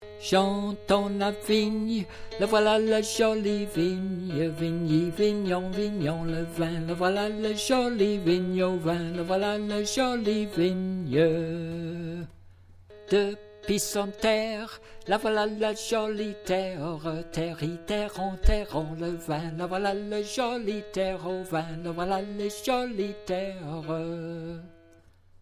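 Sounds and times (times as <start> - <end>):
tenor singing: 0.2 - 24.9.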